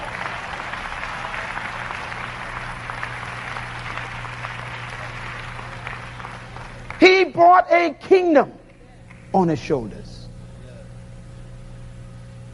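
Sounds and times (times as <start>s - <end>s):
people clapping hands: 0.0s - 7.8s, 8.6s - 9.3s
speech: 7.4s - 8.6s, 9.3s - 10.2s.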